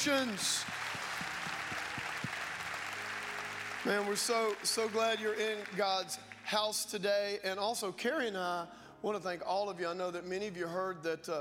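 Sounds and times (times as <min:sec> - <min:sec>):
speech: 0:00.0 - 0:00.9, 0:03.8 - 0:11.4
audience applause: 0:00.0 - 0:06.6.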